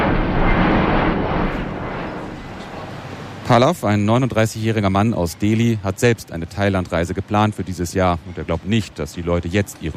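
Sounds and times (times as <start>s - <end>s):
airplane flying overhead: 0.0s - 6.4s
speech: 3.5s - 9.9s.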